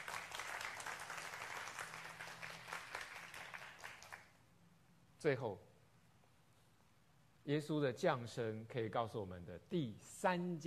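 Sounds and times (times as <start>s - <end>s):
audience clapping hands: 0.0s - 4.4s
speech: 5.2s - 5.7s, 7.4s - 10.6s.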